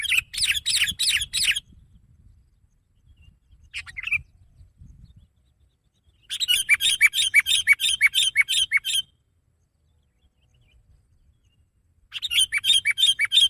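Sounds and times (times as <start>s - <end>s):
sooty-headed bulbul singing: 0.0s - 13.4s.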